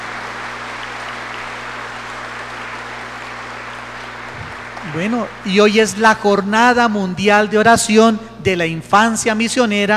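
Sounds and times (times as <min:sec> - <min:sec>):
crowd applause: 0:00.0 - 0:06.8
low steady electrical hum: 0:00.0 - 0:09.9
speech: 0:04.8 - 0:09.9.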